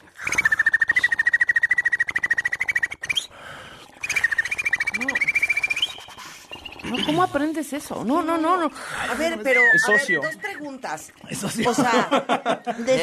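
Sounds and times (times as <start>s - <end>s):
voice making inward rolled clicking trill with high whistle: 0.2s - 3.3s, 4.0s - 7.2s, 9.4s - 11.1s
speech: 6.9s - 13.0s
laughter: 11.3s - 13.0s.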